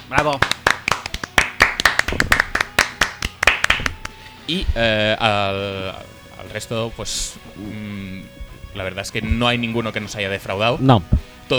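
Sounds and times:
few people clapping for a contest winner: 0.0s - 4.2s
speech: 0.1s - 0.6s, 4.5s - 11.5s.

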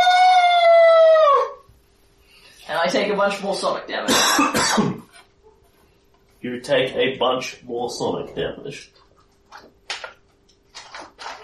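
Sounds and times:
person imitating a horrible high strained shriek: 0.0s - 1.7s
speech: 2.9s - 5.0s, 6.4s - 9.0s.

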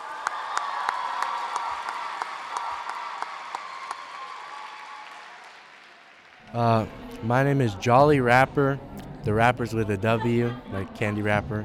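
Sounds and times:
crowd applauding: 0.0s - 7.2s
speech: 6.5s - 11.6s.

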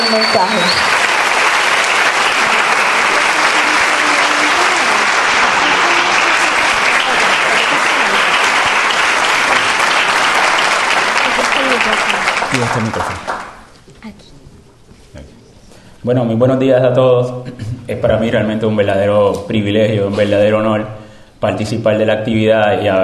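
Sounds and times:
loud audience applause: 0.0s - 13.7s
speech: 0.3s - 1.0s, 12.7s - 13.3s, 16.0s - 23.0s.

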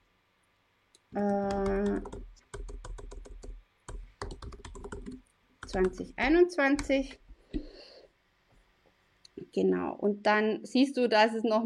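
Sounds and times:
speech: 1.1s - 2.2s, 5.7s - 7.2s, 9.6s - 11.6s
typing a group name on a computer keyboard: 1.2s - 7.1s.

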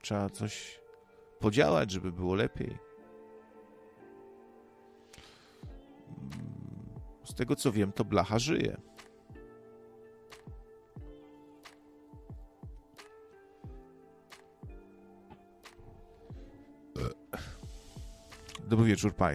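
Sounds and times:
speech: 0.0s - 0.8s, 1.4s - 2.9s, 7.3s - 8.9s, 18.7s - 19.3s
long drawn-out croaky burp: 6.1s - 7.0s, 16.9s - 17.4s.

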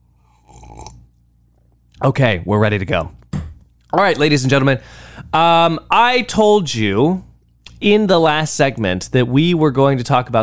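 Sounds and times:
person sipping a coffee drink: 0.0s - 2.0s
speech: 2.0s - 3.2s, 3.9s - 10.4s.

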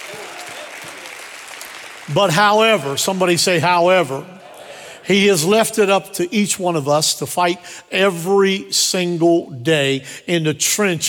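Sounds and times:
audience clapping: 0.0s - 3.5s
speech: 2.1s - 4.4s, 5.1s - 11.0s.

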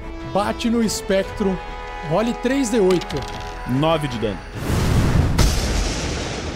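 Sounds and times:
speech: 0.4s - 4.7s
magical thunderball explosion with rumbling, crack and hissing roar: 4.5s - 6.5s.

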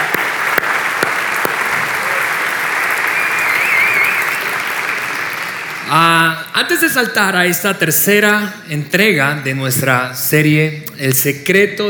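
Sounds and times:
audience applause: 0.0s - 6.1s
speech: 5.9s - 11.8s.

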